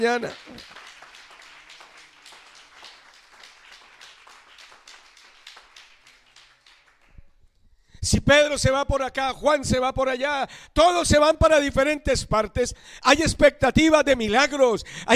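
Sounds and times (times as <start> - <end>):
speech: 0.0 - 0.8, 8.0 - 15.1
audience applause: 0.0 - 7.3.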